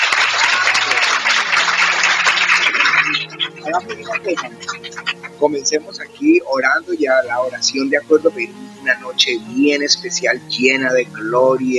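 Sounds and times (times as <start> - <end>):
audience applause: 0.0 - 5.6
laughter: 0.0 - 8.5
speech: 3.8 - 11.7.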